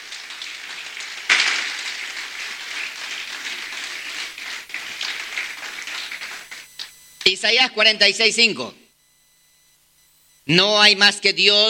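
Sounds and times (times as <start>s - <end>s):
applause: 0.0s - 6.9s
speech: 7.3s - 8.8s, 10.5s - 11.6s.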